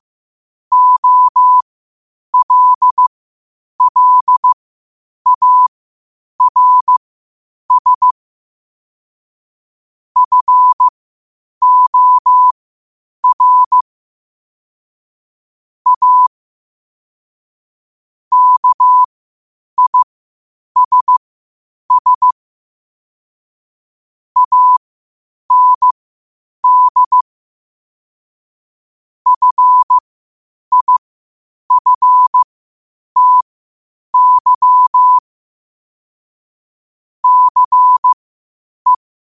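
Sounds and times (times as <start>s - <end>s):
morse code at 5 wpm: 0.7s - 1.6s, 2.4s - 3.0s, 3.8s - 4.6s, 5.3s - 5.7s, 6.4s - 7.0s, 7.7s - 8.2s, 10.2s - 10.9s, 11.6s - 12.6s, 13.2s - 13.8s, 15.9s - 16.3s, 18.3s - 19.1s, 19.8s - 20.1s, 20.8s - 21.2s, 21.9s - 22.4s, 24.4s - 24.8s, 25.5s - 26.0s, 26.6s - 27.2s, 29.3s - 30.0s, 30.7s - 31.0s, 31.7s - 32.5s, 33.2s - 33.5s, 34.2s - 35.2s, 37.2s - 38.2s.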